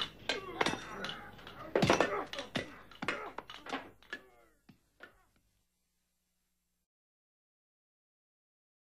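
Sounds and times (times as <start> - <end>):
sword fight: 0.0 - 4.4.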